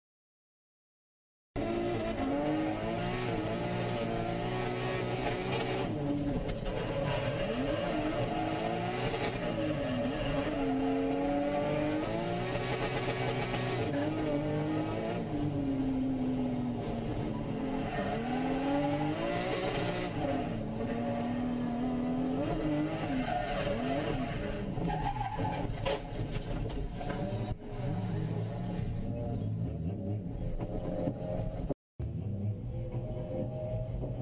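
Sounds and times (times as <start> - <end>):
Nissan Silvia S13 engine revving at Sazan Circuit: 1.6 - 34.1.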